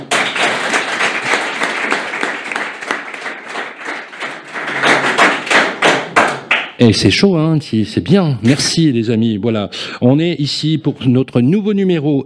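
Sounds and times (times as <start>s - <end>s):
audience applause: 0.0s - 6.6s
speech: 6.8s - 12.2s.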